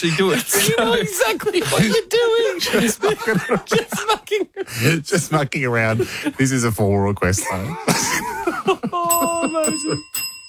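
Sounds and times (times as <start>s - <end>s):
laughter: 0.0s - 6.4s, 7.4s - 10.1s
speech: 0.0s - 10.3s
bell ringing: 9.0s - 10.4s.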